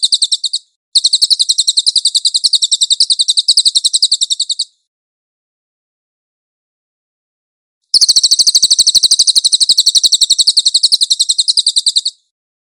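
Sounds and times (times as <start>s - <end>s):
Cililin bird giving a high chattering trill: 0.0s - 4.8s, 7.9s - 12.3s.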